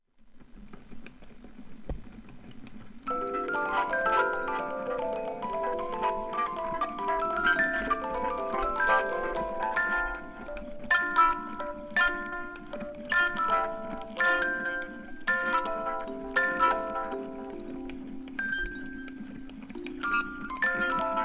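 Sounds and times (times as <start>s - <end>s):
music box: 3.0s - 21.2s.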